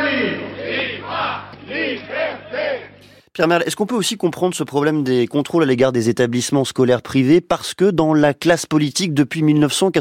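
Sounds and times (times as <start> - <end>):
large demonstration crowd chanting: 0.0 - 3.0
speech: 3.4 - 9.9.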